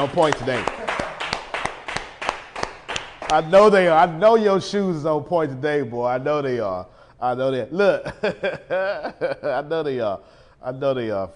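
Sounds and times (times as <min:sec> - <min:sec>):
speech: 0:00.0 - 0:00.8, 0:03.3 - 0:11.3
laughter: 0:00.0 - 0:01.3
clapping: 0:00.0 - 0:03.5.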